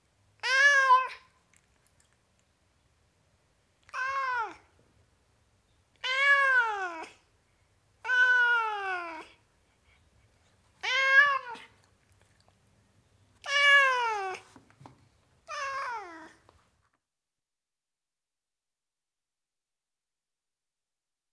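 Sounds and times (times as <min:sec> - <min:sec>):
tom cat meowing: 0:03.9 - 0:04.6, 0:06.0 - 0:07.2, 0:08.0 - 0:09.3, 0:10.8 - 0:11.7, 0:13.4 - 0:14.4, 0:15.4 - 0:16.4.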